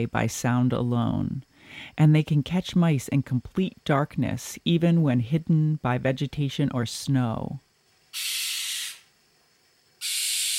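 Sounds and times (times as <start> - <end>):
speech: 0.0 - 7.6, 8.2 - 8.4
owl's long harsh hissing scream: 8.1 - 9.1, 10.0 - 10.5.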